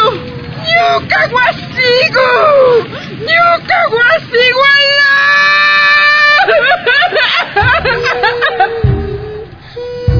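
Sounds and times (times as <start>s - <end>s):
mother wailing and sobbing in anguish as her house is burned: 0.0s - 10.1s
speech: 1.0s - 5.1s
laughter: 6.0s - 9.6s.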